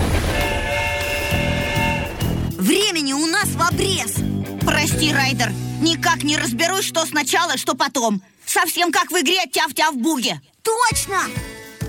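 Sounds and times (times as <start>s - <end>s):
approaching train rumbling over a rail bed: 0.0s - 2.6s
approaching train horn or whistle: 0.3s - 2.5s
speech: 2.8s - 11.8s.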